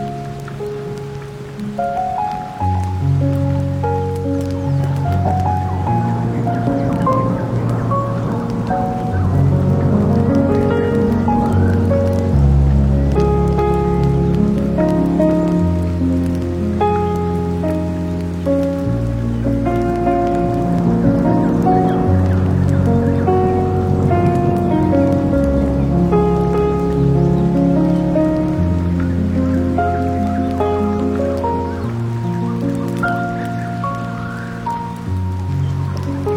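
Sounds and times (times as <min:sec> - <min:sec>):
rain: 0:00.0 - 0:36.3
sea: 0:00.0 - 0:36.3.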